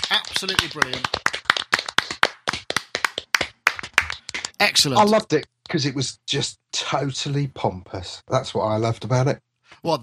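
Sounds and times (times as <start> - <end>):
small group of panel members clapping: 0.0 - 5.2
speech: 0.4 - 1.2, 4.6 - 10.0.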